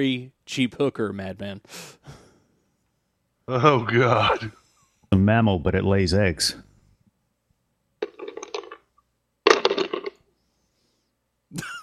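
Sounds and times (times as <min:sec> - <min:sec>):
speech: 0:00.0 - 0:02.2, 0:03.5 - 0:06.7, 0:11.5 - 0:11.7
ice cubes rattling against the bottom of a glass: 0:08.0 - 0:08.8, 0:09.5 - 0:10.2.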